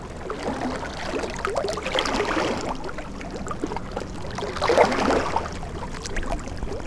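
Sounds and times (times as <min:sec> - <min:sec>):
ocean: 0:00.0 - 0:06.8.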